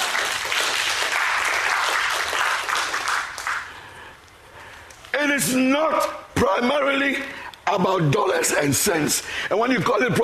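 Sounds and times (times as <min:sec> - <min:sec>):
audience applause: 0:00.0 - 0:03.8
speech: 0:05.4 - 0:10.2.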